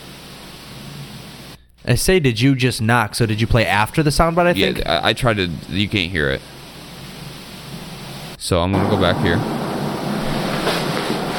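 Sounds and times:
speech: 1.8s - 6.5s, 8.4s - 9.6s
car passing outside: 8.8s - 11.3s.

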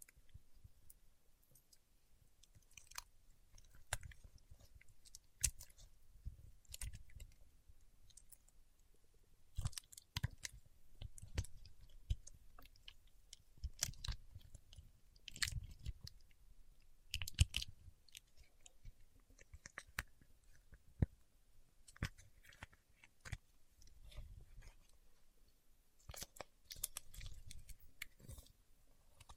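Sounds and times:
paraffin wax peeled, tapped and scratched: 2.4s - 8.6s, 9.5s - 21.3s, 21.8s - 25.1s, 26.0s - 29.3s.

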